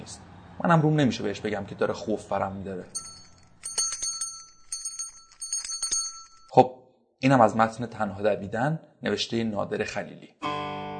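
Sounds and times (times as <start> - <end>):
speech: 0.1 - 3.1, 6.6 - 10.4
small bell being shaken: 2.8 - 6.6.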